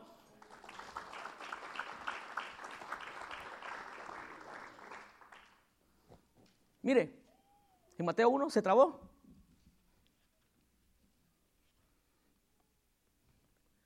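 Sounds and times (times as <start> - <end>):
audience applauding: 0.2 - 5.7
speech: 6.8 - 7.2, 8.0 - 9.1.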